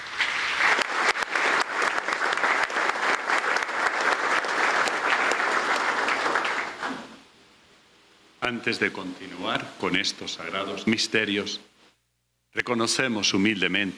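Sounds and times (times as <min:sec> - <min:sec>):
audience applauding: 0:00.0 - 0:07.2
speech: 0:08.5 - 0:11.7, 0:12.6 - 0:13.9.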